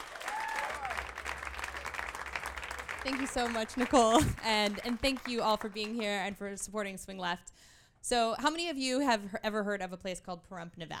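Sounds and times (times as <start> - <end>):
crowd applauding: 0.0 - 6.2
speech: 3.0 - 10.9.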